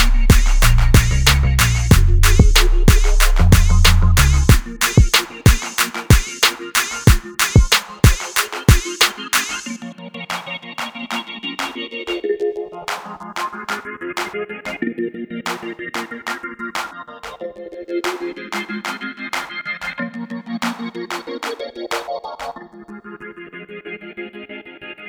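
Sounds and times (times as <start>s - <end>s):
instrumental music: 0.0s - 9.8s.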